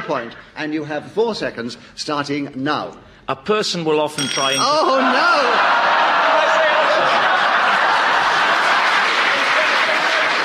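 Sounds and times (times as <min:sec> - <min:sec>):
speech: 0:00.1 - 0:05.8
crowd applause: 0:04.9 - 0:10.4
scattered laughter and chuckles: 0:04.9 - 0:10.4.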